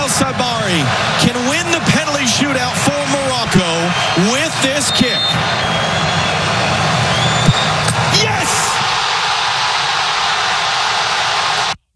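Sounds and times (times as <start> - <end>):
stadium crowd cheering wildly: 0.0 - 11.8
speech: 0.2 - 6.2.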